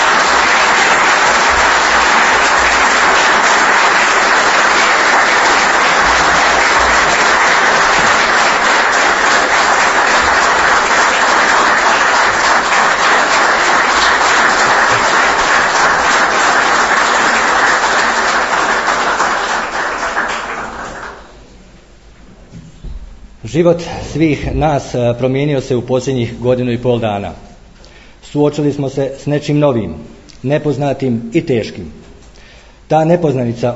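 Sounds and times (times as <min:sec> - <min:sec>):
audience applause at a civic ceremony: 0:00.0 - 0:21.4
speech: 0:23.6 - 0:27.4, 0:28.3 - 0:32.0, 0:32.9 - 0:33.7.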